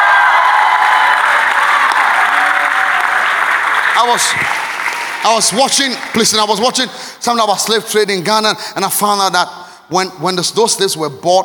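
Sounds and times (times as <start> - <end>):
audience shouting: 0.0 - 5.0
audience clapping: 0.0 - 6.9
speech: 4.0 - 4.6, 5.2 - 11.4.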